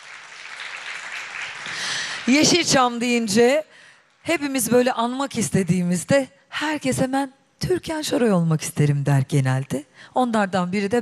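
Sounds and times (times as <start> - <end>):
audience applause at a tribute to actress Türkan Şoray: 0.0 - 2.4
speech: 2.3 - 11.0.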